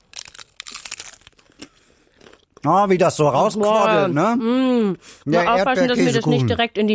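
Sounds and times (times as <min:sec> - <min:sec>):
bite into a crisp taco shell filled with quark and strawberry jam: 0:00.0 - 0:02.6
speech: 0:02.6 - 0:06.9.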